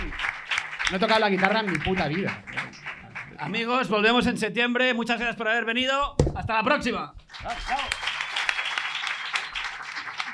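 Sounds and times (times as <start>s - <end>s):
crowd applauding: 0.0s - 4.0s, 7.3s - 10.3s
speech: 0.9s - 2.6s, 3.4s - 7.9s.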